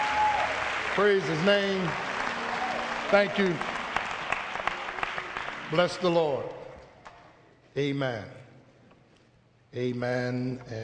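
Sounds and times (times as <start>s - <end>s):
audience applause for youth choir: 0.0s - 6.6s
speech: 1.0s - 2.1s, 3.1s - 3.7s, 5.7s - 6.6s, 7.8s - 8.4s, 9.7s - 10.8s.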